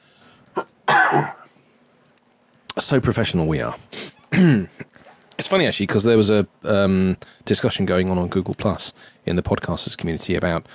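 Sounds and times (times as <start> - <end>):
man coughing and choking: 0.6 - 1.5, 4.3 - 5.0
speech: 2.8 - 10.7.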